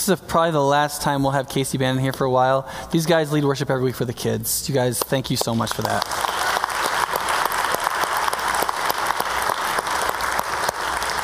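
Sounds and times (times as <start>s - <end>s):
speech: 0.0s - 6.4s
crowd clapping: 5.0s - 11.2s.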